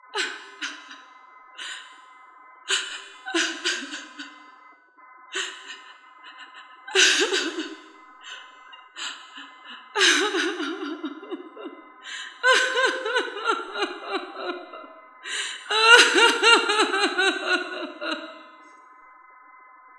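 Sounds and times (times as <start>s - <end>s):
laughter: 0.1s - 1.0s, 2.7s - 4.3s, 5.4s - 18.6s
person crying: 2.7s - 4.2s, 6.9s - 7.8s, 9.9s - 14.9s, 15.6s - 18.4s.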